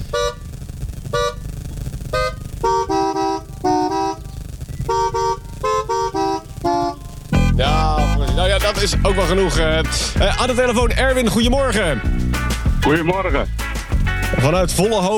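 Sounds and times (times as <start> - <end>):
horn tooting: 0.0 - 0.5, 1.1 - 1.5, 2.1 - 10.1
speech: 8.8 - 13.6, 14.4 - 15.1.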